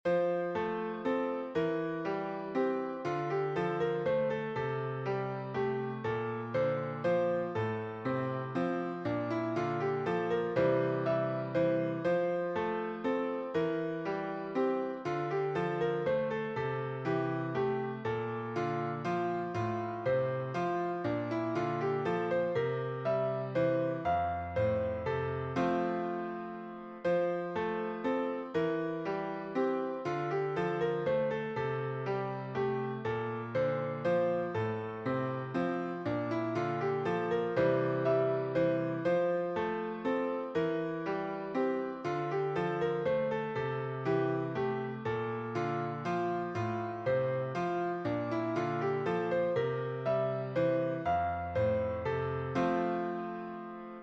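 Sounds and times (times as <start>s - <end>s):
piano minuet in F: 0.0s - 54.0s.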